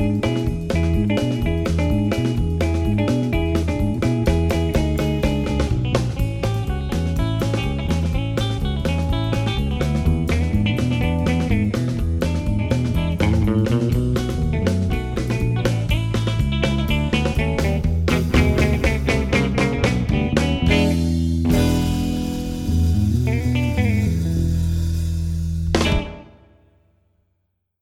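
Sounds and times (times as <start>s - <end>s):
blues drumming: 0.0s - 26.7s.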